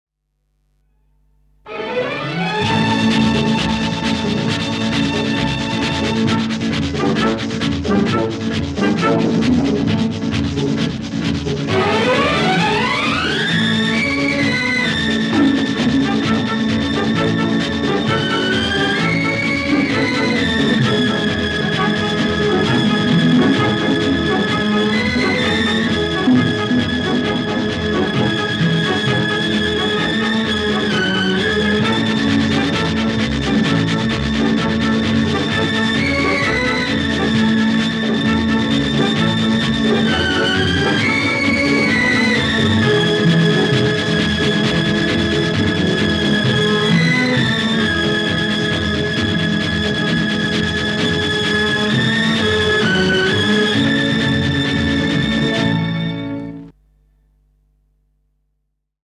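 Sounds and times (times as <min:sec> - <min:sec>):
instrumental theme music: 0:00.8 - 0:57.5.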